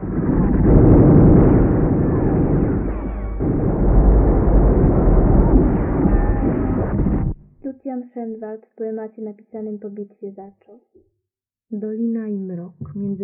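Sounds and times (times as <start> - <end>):
artillery cannonade: 0.0 - 7.4
speech: 8.5 - 11.1, 11.7 - 13.2.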